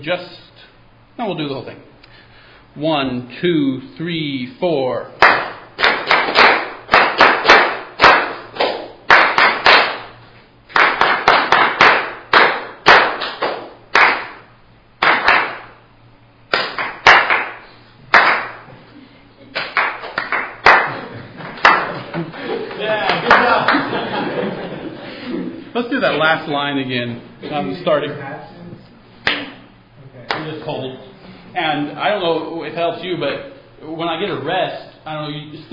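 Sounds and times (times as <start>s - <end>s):
speech: 0.0s - 0.4s, 1.2s - 1.9s, 2.8s - 5.4s, 26.2s - 28.4s, 31.8s - 35.7s
group clapping a rhythm: 5.2s - 15.8s, 16.5s - 18.8s, 19.5s - 24.8s, 29.2s - 29.7s, 30.3s - 30.8s
laughter: 20.9s - 26.4s.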